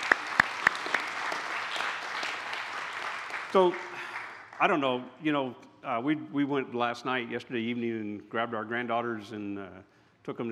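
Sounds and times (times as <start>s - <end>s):
audience applause: 0.0s - 4.7s
speech: 3.5s - 3.9s, 4.6s - 10.4s.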